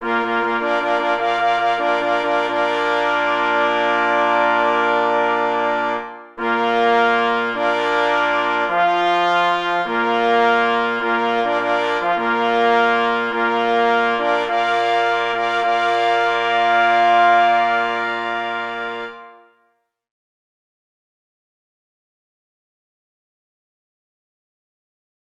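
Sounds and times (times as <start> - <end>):
Polish hunting horn call: 0.0 - 19.7.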